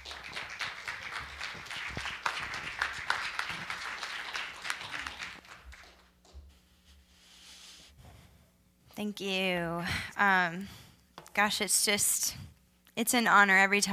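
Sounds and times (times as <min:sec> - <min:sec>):
audience applause welcoming a speaker to a Christian gathering: 0:00.0 - 0:06.1
speech: 0:09.0 - 0:10.8, 0:11.4 - 0:12.4, 0:13.0 - 0:13.9.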